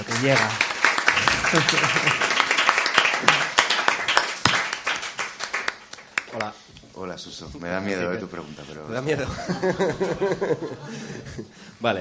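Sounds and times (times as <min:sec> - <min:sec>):
crowd clapping: 0:00.0 - 0:06.5
speech: 0:00.2 - 0:00.7, 0:01.5 - 0:02.2, 0:06.4 - 0:11.9
laughter: 0:01.1 - 0:02.5, 0:09.1 - 0:11.5.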